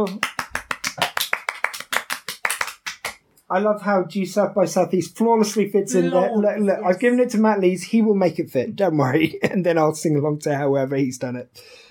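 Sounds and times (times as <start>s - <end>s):
speech: 0.0s - 0.3s, 3.5s - 11.9s
hand clapping: 0.0s - 3.2s.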